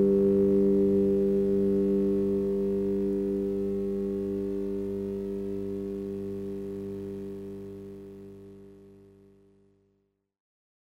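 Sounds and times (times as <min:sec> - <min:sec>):
guitar: 0:00.0 - 0:08.4.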